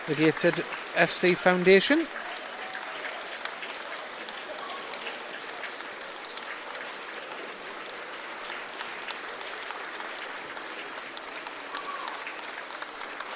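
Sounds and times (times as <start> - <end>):
crowd applause: 0.0 - 13.3
speech: 0.1 - 2.2.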